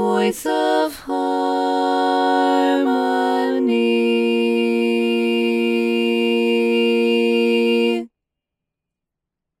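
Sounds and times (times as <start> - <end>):
choir learning track without tenor part: 0.0 - 8.1.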